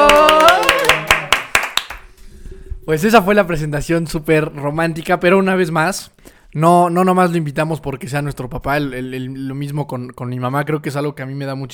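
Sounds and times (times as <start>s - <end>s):
applause: 0.0s - 2.1s
speech: 2.9s - 11.7s.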